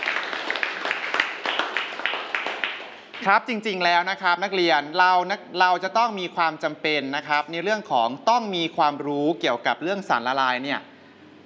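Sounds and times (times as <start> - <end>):
students clapping: 0.0 - 3.3
speech: 3.2 - 10.9.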